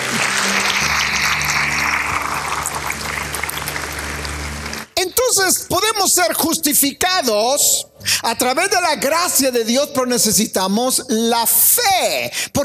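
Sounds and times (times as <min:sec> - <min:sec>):
audience clapping hands: 0:00.0 - 0:05.2
speech: 0:05.4 - 0:12.6.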